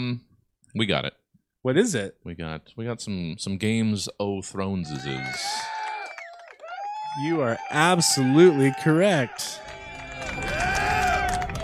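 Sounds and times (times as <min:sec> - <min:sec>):
speech: 0:00.0 - 0:05.7, 0:07.1 - 0:10.6
voices whooping: 0:04.8 - 0:11.6
live audience cheering and clapping: 0:04.9 - 0:11.6.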